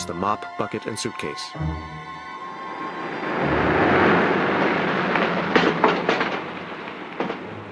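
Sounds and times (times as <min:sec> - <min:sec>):
speech: 0:00.1 - 0:02.3
car passing: 0:01.6 - 0:07.6.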